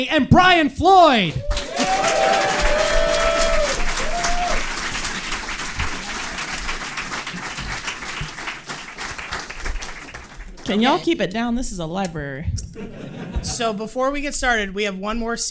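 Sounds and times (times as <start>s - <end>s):
speech: 0.0s - 2.6s, 10.7s - 15.5s
audience applause at a live show in the Ann Arbor District Library: 1.3s - 11.0s
whoops: 1.4s - 4.7s
laughter: 10.6s - 11.2s, 12.7s - 13.8s.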